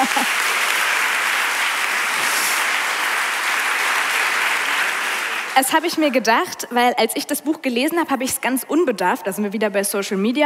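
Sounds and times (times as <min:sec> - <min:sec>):
audience clapping: 0:00.0 - 0:06.2
speech: 0:05.6 - 0:10.4.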